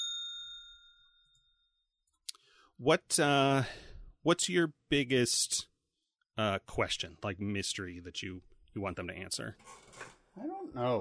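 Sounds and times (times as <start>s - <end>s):
spoiler warning bell struck: 0.0s - 1.8s
speech: 2.8s - 5.7s, 6.4s - 11.0s.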